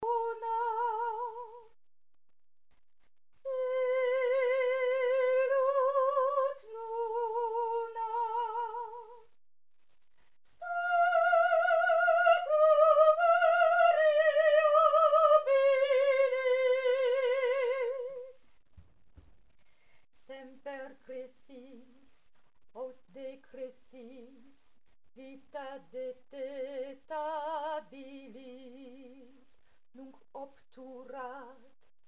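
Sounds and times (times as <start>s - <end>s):
soprano singing: 0.0s - 1.8s, 3.4s - 9.3s, 10.5s - 18.4s, 20.2s - 22.1s, 25.2s - 31.8s.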